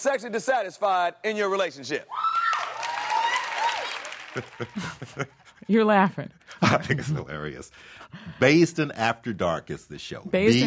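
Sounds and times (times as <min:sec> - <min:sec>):
speech: 0:00.0 - 0:02.4, 0:04.4 - 0:10.6
talk-show audience applause: 0:02.2 - 0:05.5
laughter: 0:04.2 - 0:05.6, 0:06.6 - 0:07.6.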